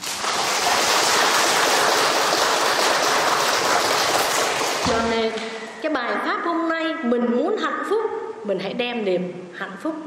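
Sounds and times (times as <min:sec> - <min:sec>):
audience applause: 0:00.0 - 0:05.2
speech: 0:05.3 - 0:10.0.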